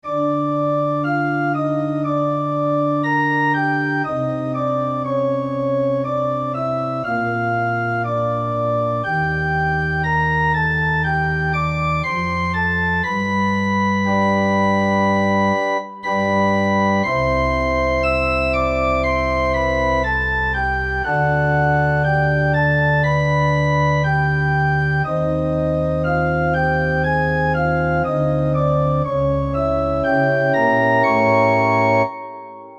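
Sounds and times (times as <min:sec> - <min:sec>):
organ: 0:00.0 - 0:32.7.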